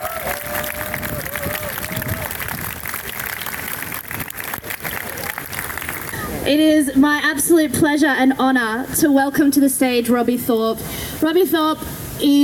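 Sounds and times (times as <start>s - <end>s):
crowd applauding: 0.0s - 6.3s
speech: 6.5s - 12.4s.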